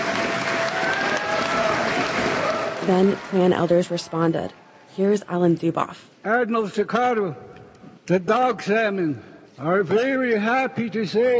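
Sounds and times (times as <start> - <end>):
applause in a school gym in a Tlingit village: 0.0 - 3.8
speech: 2.9 - 7.5, 8.1 - 11.3.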